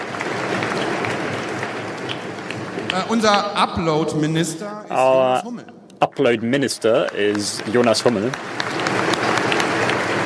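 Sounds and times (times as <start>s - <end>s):
crowd applauding: 0.0s - 3.8s, 6.3s - 10.2s
speech: 3.0s - 8.8s.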